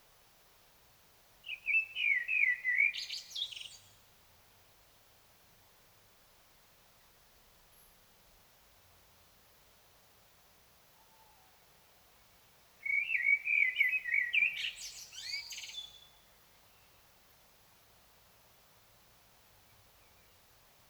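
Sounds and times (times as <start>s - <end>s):
Common blackbird singing: 1.5s - 3.8s, 12.8s - 16.2s.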